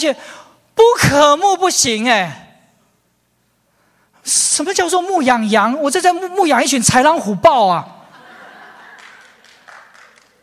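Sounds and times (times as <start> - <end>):
speech: 0.0 - 2.5, 4.2 - 8.0
laughter: 8.1 - 10.4
audience clapping: 8.8 - 10.4.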